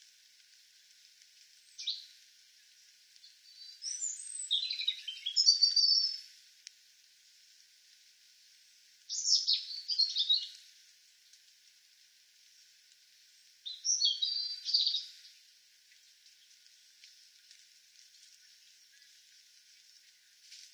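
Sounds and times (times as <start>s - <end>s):
faint hiss: 0.0s - 20.7s
European robin singing: 1.6s - 2.1s, 3.2s - 6.2s, 9.1s - 10.6s, 13.6s - 15.4s.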